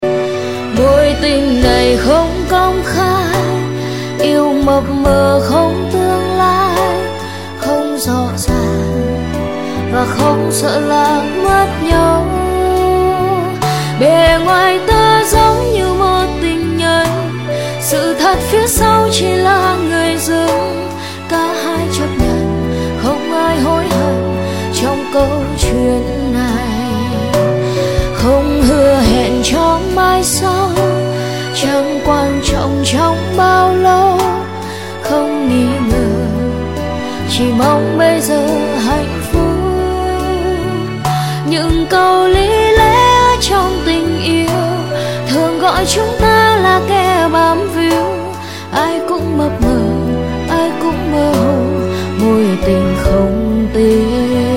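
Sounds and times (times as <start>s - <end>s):
cover song: 0.0s - 54.5s.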